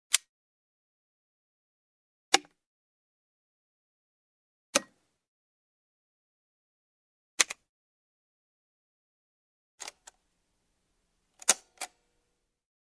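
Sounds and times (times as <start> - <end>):
various switches, toggles and buttons clicking: 0.1 - 0.3, 4.8 - 5.0, 7.4 - 7.7, 11.4 - 12.0.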